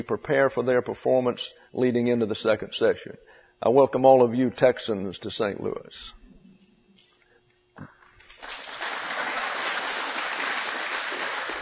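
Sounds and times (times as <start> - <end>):
speech: 0.0 - 6.2
audience applause: 8.2 - 11.6.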